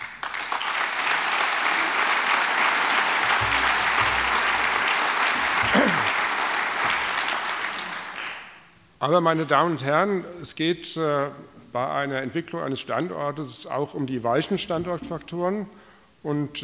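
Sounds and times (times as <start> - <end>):
audience applause: 0.0 - 8.6
speech: 9.0 - 16.6.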